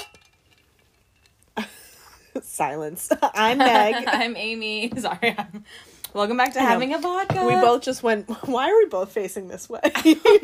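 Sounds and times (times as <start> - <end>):
glasses clinking in a toast: 0.0 - 1.4
speech: 2.6 - 10.4.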